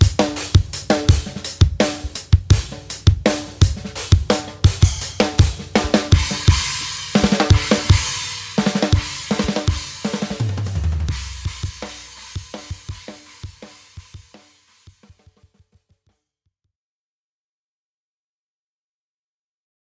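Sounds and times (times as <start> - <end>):
Meinl Classics Custom Extreme Metal cymbals: 0.0 - 14.6.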